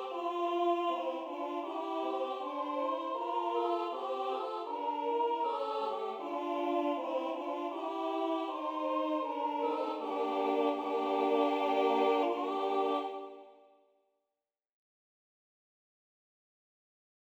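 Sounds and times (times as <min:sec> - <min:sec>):
people singing a Romanian Christmas carol in Bessarabia: 0:00.0 - 0:13.7.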